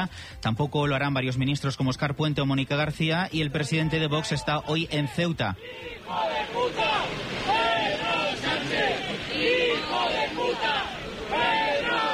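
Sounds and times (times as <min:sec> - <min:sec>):
speech: 0:00.0 - 0:07.2
crowd booing the presidente del gobierno: 0:03.7 - 0:12.1
crowd chanting: 0:05.6 - 0:12.1.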